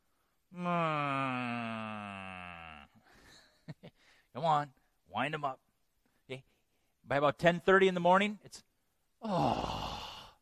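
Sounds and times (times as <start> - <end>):
speech: 0.5 - 1.1, 4.4 - 5.6, 6.3 - 6.5, 7.1 - 9.8
voice imitating a lugubrious groaning moo: 0.6 - 3.0, 9.2 - 10.3.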